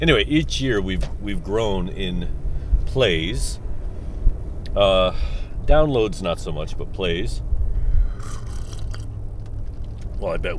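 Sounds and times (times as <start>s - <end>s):
speech: 0.0s - 3.6s, 4.7s - 7.5s, 10.2s - 10.5s
person sipping coffee: 8.2s - 9.2s.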